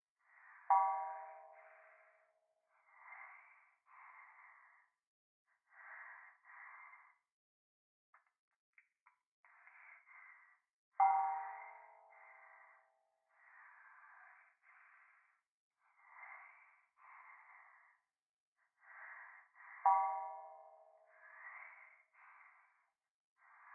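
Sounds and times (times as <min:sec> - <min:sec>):
person breathing close to right ear in bath: 0:02.8 - 0:07.3, 0:09.5 - 0:20.6, 0:21.2 - 0:23.7.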